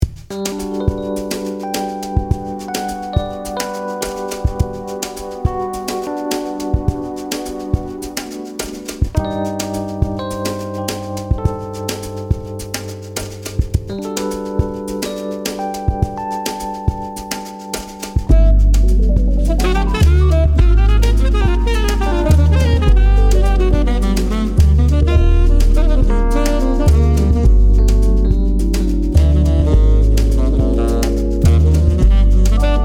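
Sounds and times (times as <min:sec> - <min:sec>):
groovy lounge jazz: 0:00.0 - 0:32.8.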